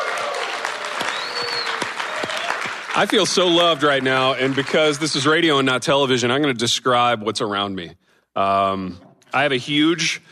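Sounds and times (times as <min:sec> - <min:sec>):
faint whoops: 0:00.0 - 0:02.7
crowd applause: 0:00.0 - 0:05.4
speech: 0:03.0 - 0:10.3.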